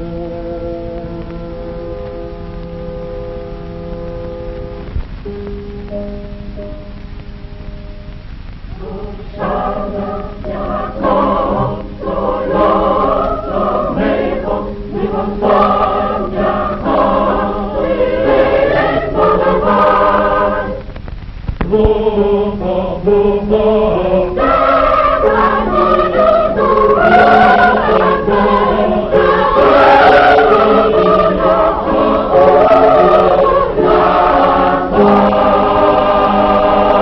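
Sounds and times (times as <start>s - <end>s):
Purim songs being sung: 8.7s - 20.9s, 21.6s - 37.0s.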